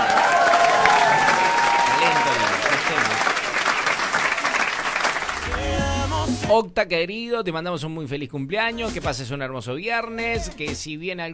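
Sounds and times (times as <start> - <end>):
applause: 0.0 - 5.9
speech: 6.5 - 11.3.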